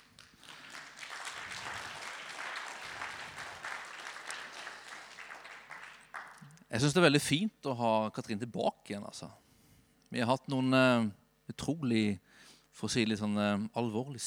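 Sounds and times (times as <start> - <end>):
group applauding: 0.0 - 6.9
speech: 6.8 - 9.4, 10.1 - 14.2.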